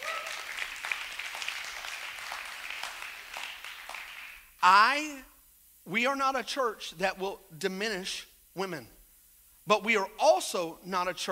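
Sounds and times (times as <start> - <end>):
crowd clapping: 0.0 - 4.5
speech: 4.6 - 9.0, 9.6 - 11.3.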